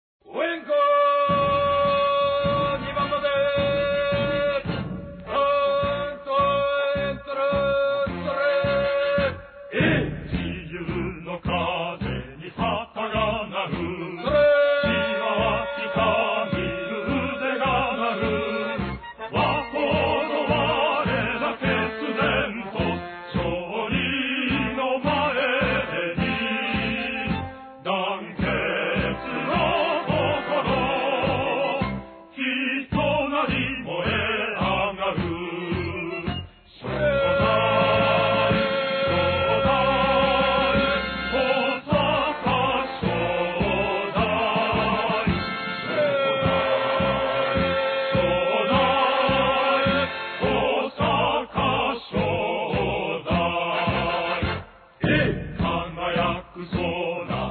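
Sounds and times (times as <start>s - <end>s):
cheer song: 0.3s - 57.4s.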